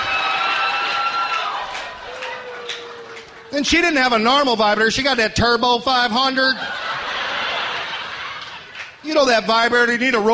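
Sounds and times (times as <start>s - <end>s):
audience applauding and cheering: 0.0s - 4.8s
high whooping voices: 0.0s - 4.8s
laughter: 1.4s - 4.0s, 6.4s - 9.0s
speech: 3.5s - 6.8s, 9.0s - 10.3s.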